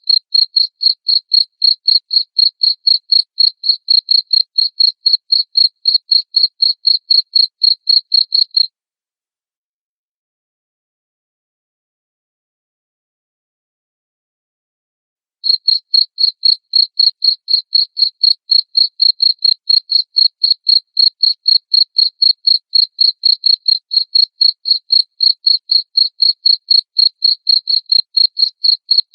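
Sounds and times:
cricket chirping: 0.0 - 8.7, 15.5 - 29.1.

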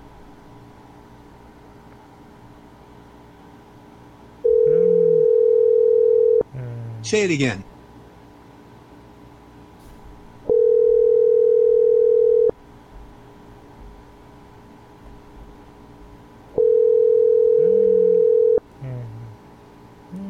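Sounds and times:
telephone dial tone: 4.5 - 6.4, 10.5 - 12.5, 16.6 - 18.6
speech: 7.1 - 7.7.

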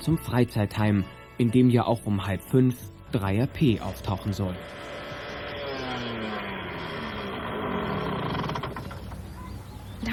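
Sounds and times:
speech: 0.0 - 4.9
small moped engine running and revving: 3.9 - 9.4.

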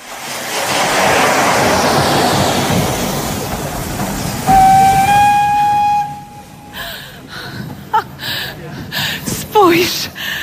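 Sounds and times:
loud rushing hiss of steam: 0.0 - 10.4
steam train whistle at a railway station: 4.5 - 6.8.

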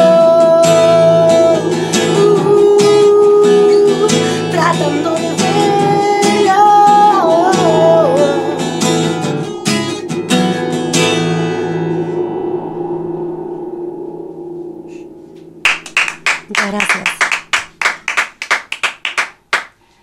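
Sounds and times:
song's final sustained notes: 0.2 - 18.6
small group clapping: 15.7 - 19.8.

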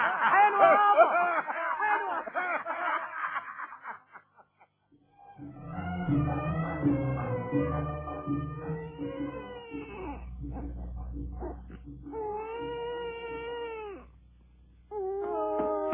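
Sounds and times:
laughter: 0.0 - 4.8
low hum: 5.1 - 15.0
young child crying in a radio drama scene: 8.8 - 10.3, 11.4 - 14.1, 14.9 - 15.9.

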